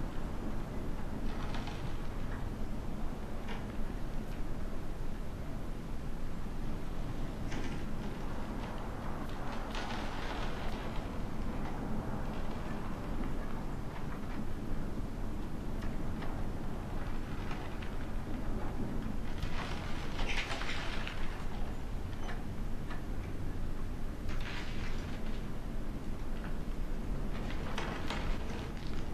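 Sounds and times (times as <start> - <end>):
cabin ambience: 0.0 - 29.1.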